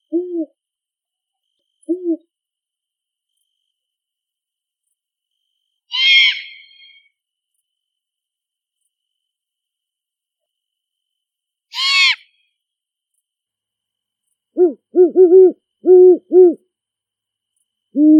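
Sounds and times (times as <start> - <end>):
great horned owl hooting in a big forest: 0.0 - 0.6, 1.8 - 2.3, 5.9 - 7.1, 11.7 - 12.4, 14.5 - 16.7, 17.9 - 18.1.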